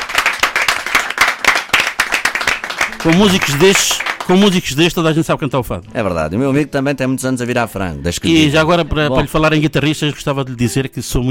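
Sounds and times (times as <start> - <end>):
audience applause for musicians: 0.0 - 4.8
speech: 3.0 - 11.3.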